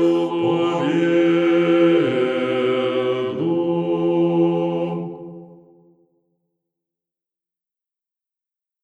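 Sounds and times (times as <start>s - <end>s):
bass choir chanting: 0.0s - 5.8s.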